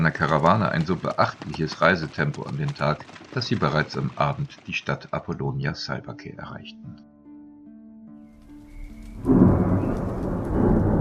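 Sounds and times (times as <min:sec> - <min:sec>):
steady thunderstorm rain pouring: 0:00.0 - 0:05.2, 0:09.2 - 0:11.0
speech: 0:00.1 - 0:07.1, 0:09.2 - 0:09.5
crashing thunderclap rumbling: 0:09.0 - 0:11.0.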